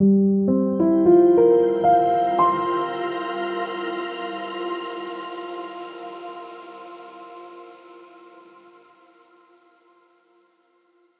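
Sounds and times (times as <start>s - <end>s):
simple piano logo: 0.0s - 6.1s.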